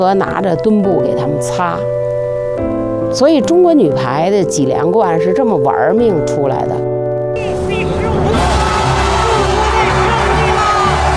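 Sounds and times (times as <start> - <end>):
speech: 0.0 - 7.6
spectators cheering: 7.4 - 11.1
thunderous applause from spectators: 7.4 - 11.1.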